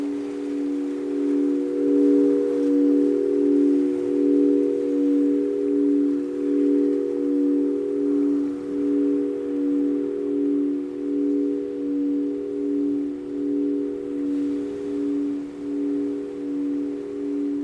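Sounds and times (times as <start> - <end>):
crystal singing bowls: 0.0 - 17.6.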